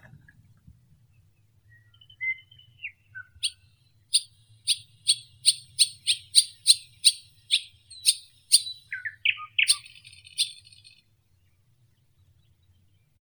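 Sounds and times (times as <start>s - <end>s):
marsh warbler Acrocephalus palustris singing: 1.8s - 11.0s.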